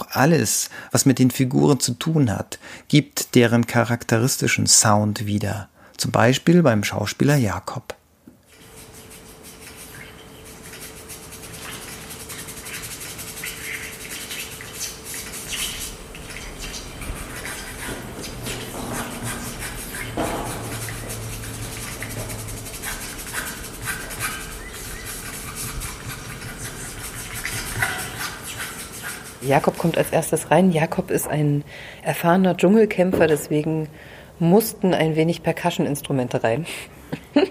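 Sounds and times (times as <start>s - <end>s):
speech: 0.2s - 8.0s, 29.5s - 37.4s
crawling and scratching sound effects: 8.5s - 30.4s.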